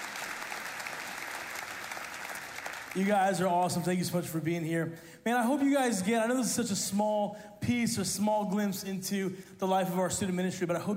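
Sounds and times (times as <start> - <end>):
audience applause: 0.0 - 3.2
speech: 2.9 - 10.9.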